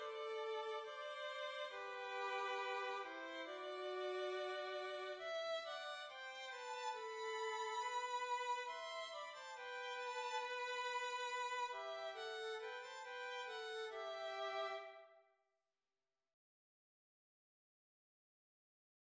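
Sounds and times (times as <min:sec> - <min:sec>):
violins playing: 0:00.0 - 0:15.0.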